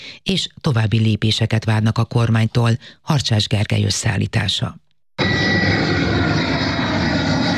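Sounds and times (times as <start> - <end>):
speech: 0.2 - 5.8
airplane engine roaring: 5.2 - 7.5.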